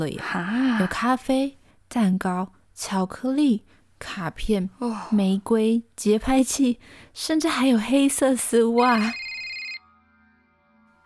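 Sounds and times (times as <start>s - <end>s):
speech: 0.0s - 9.2s
mobile phone ringing: 8.8s - 9.9s.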